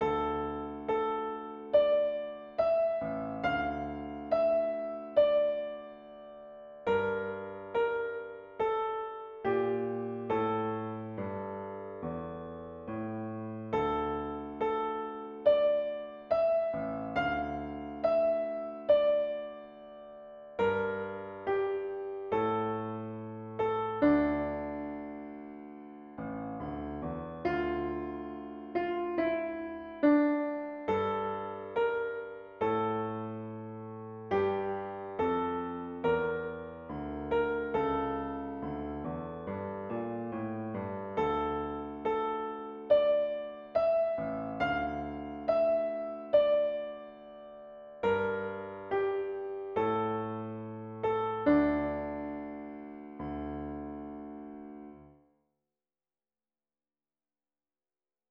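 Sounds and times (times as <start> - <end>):
piano: 0.0 - 55.3.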